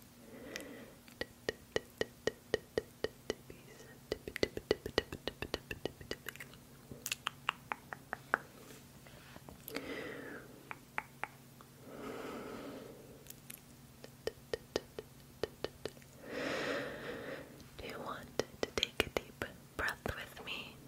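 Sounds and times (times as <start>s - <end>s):
faint steady hum: 0.0s - 20.8s
sharp tongue clicks: 0.5s - 8.5s, 10.7s - 11.4s, 13.2s - 16.2s.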